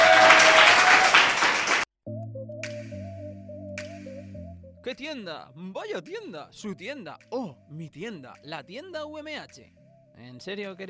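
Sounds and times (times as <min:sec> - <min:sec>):
audience applause: 0:00.0 - 0:01.9
speech: 0:04.9 - 0:10.8.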